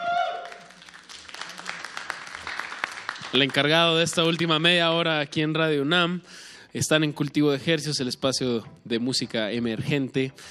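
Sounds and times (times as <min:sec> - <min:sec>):
audience applause: 0:00.0 - 0:04.4
speech: 0:03.3 - 0:10.5.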